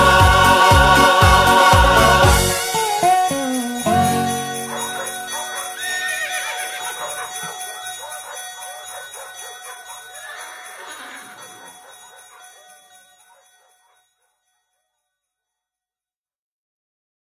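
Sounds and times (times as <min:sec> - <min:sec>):
festive song in Russian: 0:00.0 - 0:11.9.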